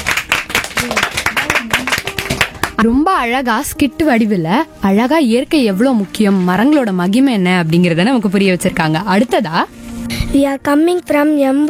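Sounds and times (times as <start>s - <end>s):
audience clapping after a middle school skit: 0.0s - 2.8s
speech: 0.8s - 1.8s, 2.8s - 11.6s.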